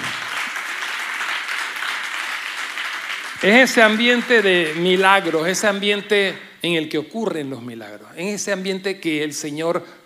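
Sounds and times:
audience applauding: 0:00.0 - 0:05.8
speech: 0:03.4 - 0:10.0.

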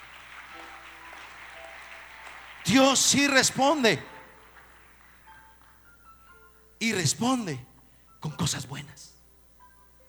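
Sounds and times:
crowd clapping in praise: 0:00.0 - 0:05.9
speech: 0:02.6 - 0:04.1, 0:06.8 - 0:09.2.

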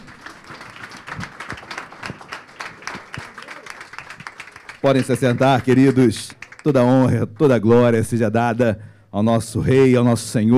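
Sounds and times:
audience applauding: 0:00.0 - 0:07.5
speech: 0:04.8 - 0:10.5.

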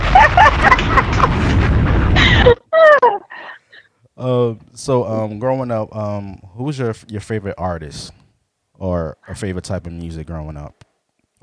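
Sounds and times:
laughter: 0:00.0 - 0:01.4, 0:02.2 - 0:03.5
bomb-drop sound effect booming rumble with wailing tones: 0:00.0 - 0:02.6
speech: 0:04.5 - 0:08.2, 0:08.8 - 0:11.4.

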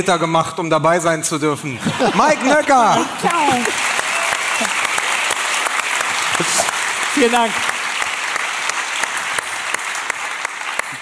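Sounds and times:
speech: 0:00.0 - 0:03.9, 0:04.6 - 0:04.8, 0:06.4 - 0:06.6, 0:07.2 - 0:07.7
laughter: 0:01.7 - 0:05.2
audience applause: 0:02.0 - 0:10.9
guest clapping along: 0:03.1 - 0:10.9.

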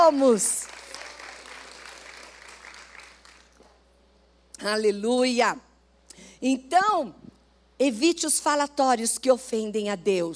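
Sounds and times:
audience applauding: 0:00.0 - 0:03.7
speech: 0:00.1 - 0:00.7, 0:04.6 - 0:05.7, 0:06.4 - 0:10.3.

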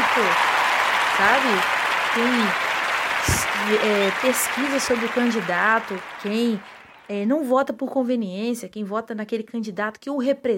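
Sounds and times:
applause: 0:00.0 - 0:07.3
speech: 0:00.2 - 0:00.6, 0:01.2 - 0:02.6, 0:03.2 - 0:10.5.

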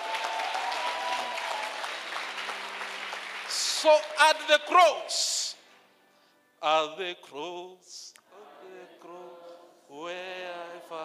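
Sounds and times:
crowd clapping: 0:00.0 - 0:04.8
speech: 0:03.8 - 0:05.4, 0:06.6 - 0:08.2.

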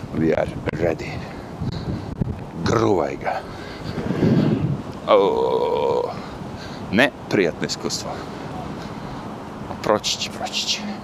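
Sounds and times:
wind blowing into the microphone: 0:00.0 - 0:07.4
speech: 0:00.1 - 0:01.4, 0:02.7 - 0:04.0, 0:05.1 - 0:06.2, 0:06.9 - 0:08.4, 0:09.9 - 0:11.0.

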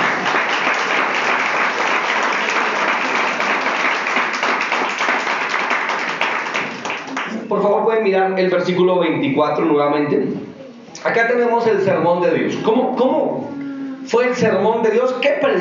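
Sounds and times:
audience applause: 0:00.0 - 0:07.5
speech: 0:07.5 - 0:13.5, 0:14.1 - 0:15.5.

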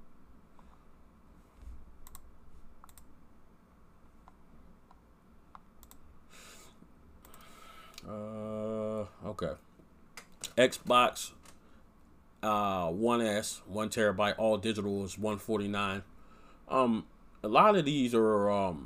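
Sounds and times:
quiet hum: 0:00.0 - 0:18.8
faint computer mouse clicks: 0:02.0 - 0:03.1, 0:04.2 - 0:06.0
speech: 0:09.4 - 0:09.7, 0:10.6 - 0:11.4, 0:12.4 - 0:16.1, 0:16.7 - 0:18.8.

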